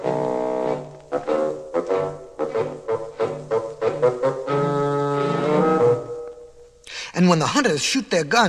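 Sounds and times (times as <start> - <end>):
low reedy bassoon melody: 0.0 - 6.7
speech: 7.3 - 8.4.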